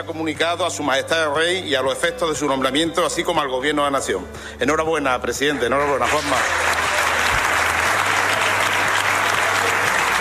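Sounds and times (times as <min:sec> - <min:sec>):
speech: 0:00.0 - 0:06.8
applause in parliament chamber: 0:06.0 - 0:10.2.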